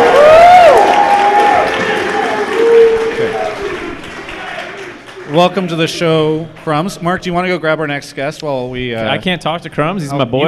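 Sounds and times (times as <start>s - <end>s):
audience applause: 0.0s - 6.5s
speech: 5.4s - 10.4s.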